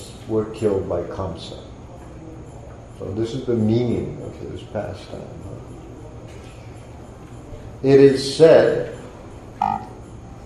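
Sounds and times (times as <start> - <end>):
steady low hum: 0.0 - 10.4
speech: 0.3 - 1.8, 3.0 - 5.8, 7.8 - 9.0
computer buzzing alert: 9.6 - 10.0.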